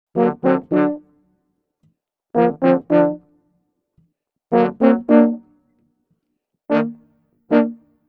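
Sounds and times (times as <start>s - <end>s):
brass section in G minor: 0.2s - 1.0s, 2.4s - 3.2s, 4.5s - 5.4s, 6.7s - 7.8s.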